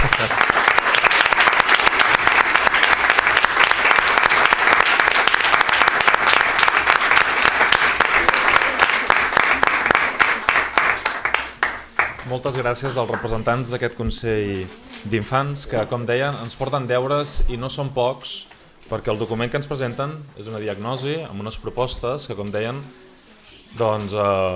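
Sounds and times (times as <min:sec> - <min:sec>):
audience applause: 0:00.0 - 0:13.3
speech: 0:12.3 - 0:23.0, 0:23.7 - 0:24.5.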